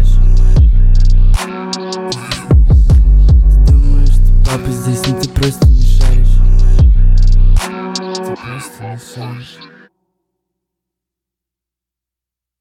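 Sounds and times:
boosted bass: 0.0s - 8.5s.

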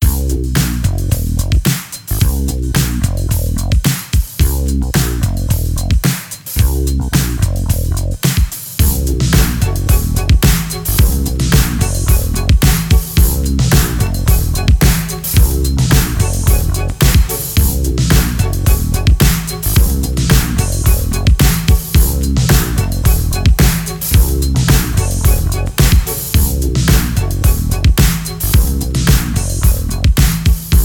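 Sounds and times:
freestyle hip-hop beat with rock strings: 0.0s - 30.8s.

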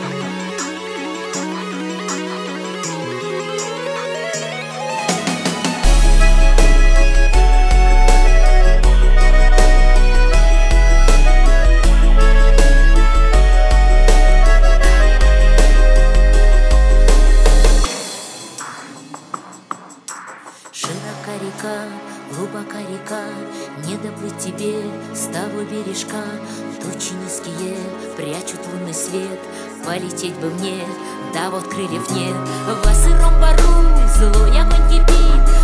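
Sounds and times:
33-37 Hz low bass tone: 5.8s - 17.9s, 32.8s - 35.6s.

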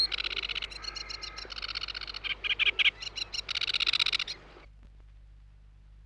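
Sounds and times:
Sedge Warbler singing: 0.0s - 4.3s.

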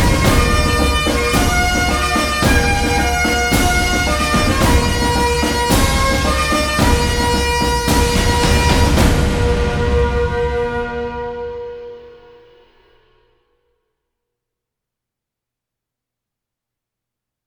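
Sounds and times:
bagpipes playing: 0.0s - 11.2s.

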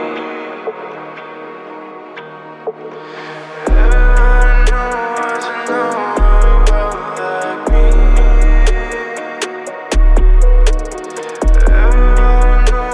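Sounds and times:
37-41Hz low bass tone: 3.7s - 5.0s, 6.2s - 7.0s, 7.7s - 9.0s, 10.0s - 10.9s, 11.5s - 12.9s.

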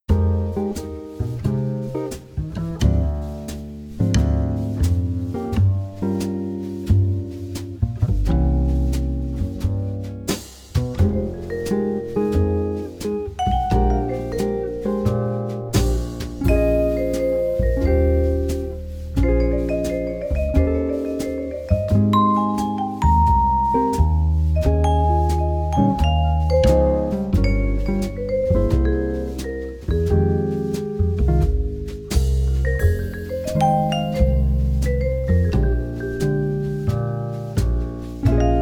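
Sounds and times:
jazz band playing: 0.1s - 38.6s.

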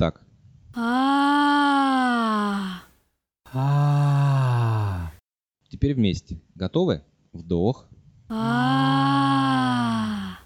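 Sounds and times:
speech: 0.0s - 1.2s, 3.5s - 3.8s, 5.8s - 9.0s
breathy hoarse sung tone with vocal cords held apart: 0.8s - 2.9s, 3.5s - 5.2s, 8.3s - 10.4s.

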